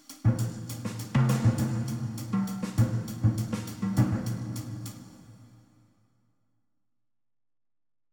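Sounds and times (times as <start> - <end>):
drum kit: 0.0 - 5.4.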